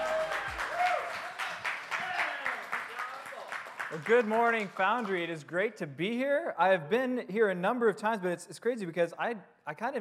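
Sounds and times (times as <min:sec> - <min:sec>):
church congregation applauding a pastor: 0:00.0 - 0:05.6
speech: 0:03.9 - 0:09.9.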